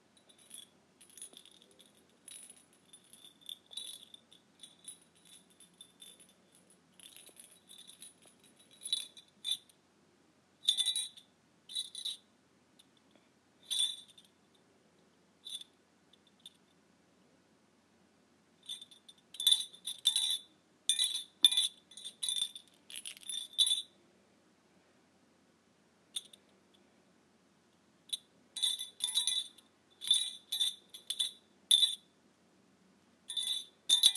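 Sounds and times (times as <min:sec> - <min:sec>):
tiny bell jingling: 0:00.1 - 0:09.8, 0:10.6 - 0:12.3, 0:13.6 - 0:14.4, 0:18.6 - 0:24.0, 0:28.1 - 0:32.1, 0:33.3 - 0:34.1.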